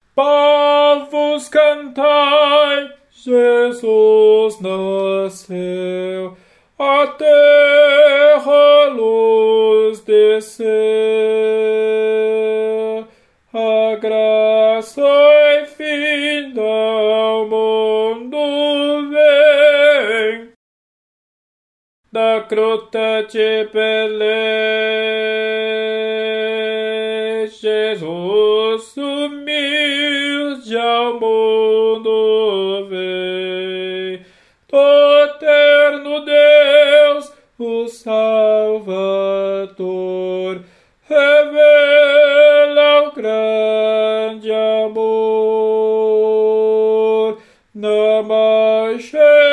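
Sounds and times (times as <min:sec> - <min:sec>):
tenor singing: 0:00.0 - 0:20.6, 0:22.1 - 0:49.5.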